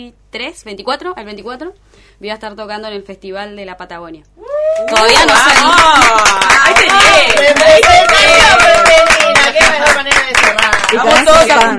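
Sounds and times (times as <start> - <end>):
speech: 0.0 - 11.7
audience applause: 4.9 - 11.7.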